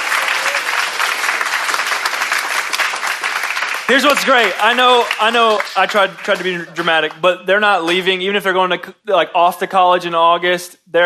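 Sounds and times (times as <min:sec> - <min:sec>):
audience applause: 0:00.0 - 0:07.2
speech: 0:03.9 - 0:11.0.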